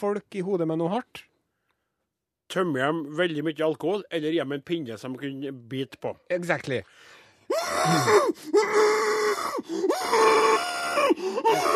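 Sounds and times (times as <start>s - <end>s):
speech: 0.0s - 1.3s, 2.5s - 11.7s
sharp intakes of breath: 6.9s - 8.5s
patient groaning in old operating room: 7.5s - 11.7s.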